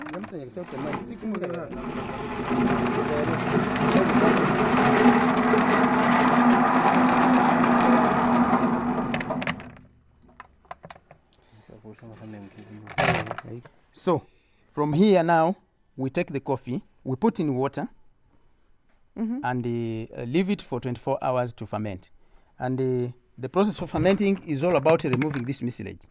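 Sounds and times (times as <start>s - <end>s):
speech: 0.2s - 4.4s, 14.0s - 18.0s, 19.2s - 26.0s
coffee hulling machine separating husks: 0.6s - 9.9s.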